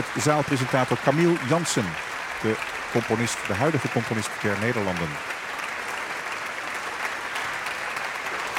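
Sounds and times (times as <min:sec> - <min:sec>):
concert hall audience applause: 0:00.0 - 0:08.5
speech: 0:00.2 - 0:05.4.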